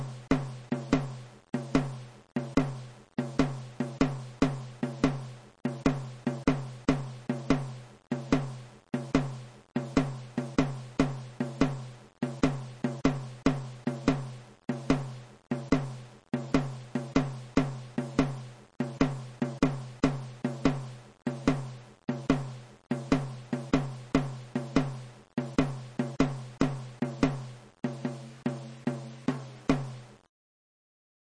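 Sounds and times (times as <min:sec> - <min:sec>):
funk mid surdo drum: 0:00.0 - 0:30.3.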